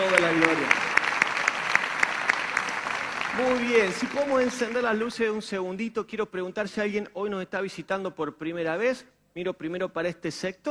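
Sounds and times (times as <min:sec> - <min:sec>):
audience applauding: 0:00.0 - 0:05.0
some people clapping in rhythm: 0:00.0 - 0:05.0
speech: 0:03.4 - 0:10.7.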